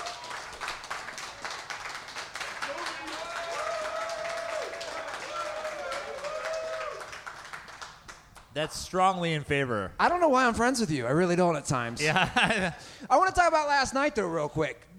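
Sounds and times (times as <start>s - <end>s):
loud whoops and cheers: 0.0s - 0.6s, 2.6s - 7.2s
audience clapping: 0.0s - 8.8s
speech: 8.6s - 14.9s
laughter: 12.0s - 13.0s.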